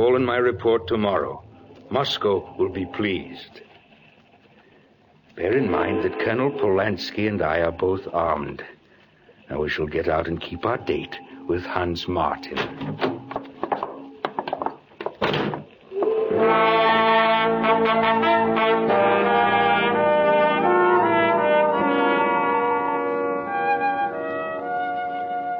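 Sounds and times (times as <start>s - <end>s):
speech: 0.0s - 3.7s, 5.4s - 8.8s, 9.5s - 13.2s
thumps and knocks: 12.6s - 15.8s
ship and tugboat horns on a waterfront: 16.0s - 25.5s.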